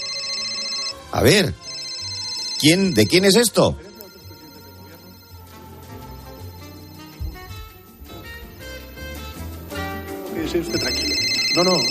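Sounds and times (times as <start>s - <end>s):
mobile phone ringing with a melodic ringtone: 0.0s - 7.4s, 10.6s - 11.9s
speech: 1.1s - 1.6s, 2.6s - 3.8s.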